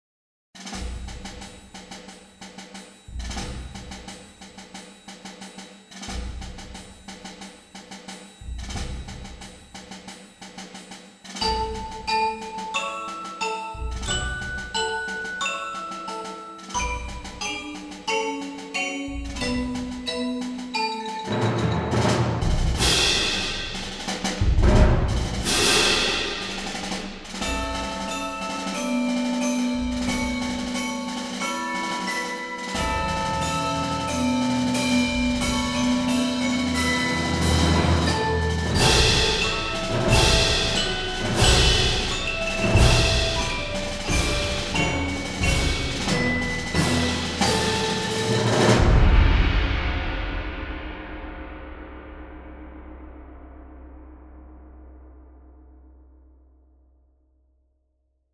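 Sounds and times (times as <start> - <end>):
percussion theme: 0.6 - 55.2.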